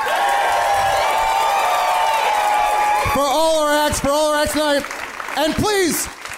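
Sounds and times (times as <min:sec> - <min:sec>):
audience cheering and scattered whoops: 0:00.0 - 0:04.2
steady audience applause: 0:00.0 - 0:06.3
speech: 0:03.1 - 0:06.2.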